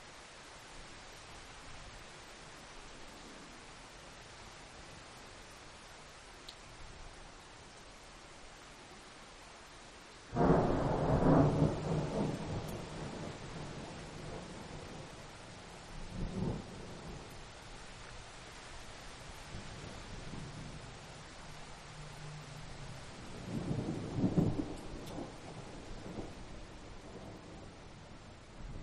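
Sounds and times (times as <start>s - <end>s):
rain: 0.0s - 28.8s
thunder: 10.4s - 15.1s, 23.4s - 26.3s.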